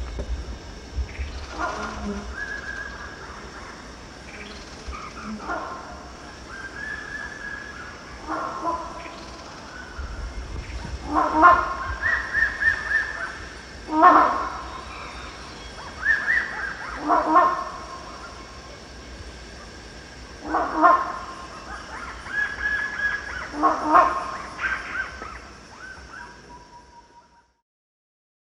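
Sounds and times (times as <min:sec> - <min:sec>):
low background hum: 0:00.0 - 0:27.6
rhinoceros hornbill giving harsh nasal honks: 0:11.0 - 0:18.4, 0:20.5 - 0:25.3.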